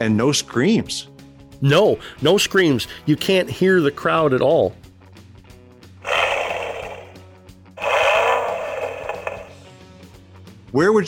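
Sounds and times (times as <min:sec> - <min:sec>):
speech: 0:00.0 - 0:04.8, 0:10.8 - 0:11.0
Mustang sports car engine revving: 0:06.0 - 0:07.2, 0:07.8 - 0:09.6.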